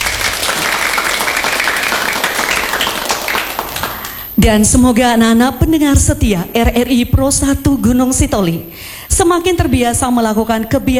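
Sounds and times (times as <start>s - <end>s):
children clapping: 0.0s - 4.4s
speech: 4.4s - 10.9s.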